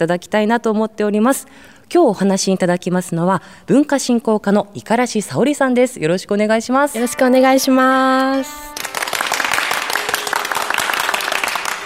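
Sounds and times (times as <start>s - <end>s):
speech: 0.0s - 8.9s
applause in a concert hall: 8.2s - 11.8s.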